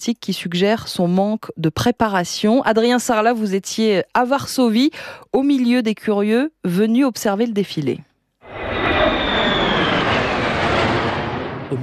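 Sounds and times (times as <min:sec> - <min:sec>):
speech: 0:00.0 - 0:08.1
military fighter jets flying overhead: 0:08.4 - 0:11.8.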